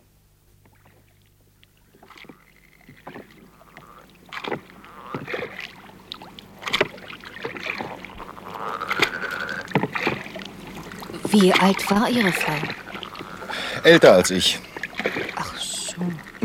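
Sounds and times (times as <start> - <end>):
rowing boat on water: 0.6 - 16.4
speech: 11.4 - 12.8, 13.8 - 14.7.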